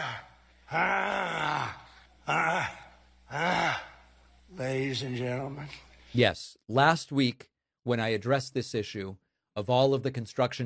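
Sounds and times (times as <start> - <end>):
grunting attributed to Donald Trump: 0.0 - 4.0
speech: 0.7 - 1.4, 4.9 - 10.6.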